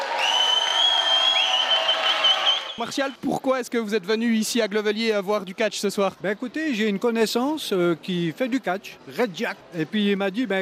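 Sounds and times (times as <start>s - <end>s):
crowd applauding and cheering at a professional wrestling show: 0.0s - 2.8s
speech: 2.8s - 10.6s.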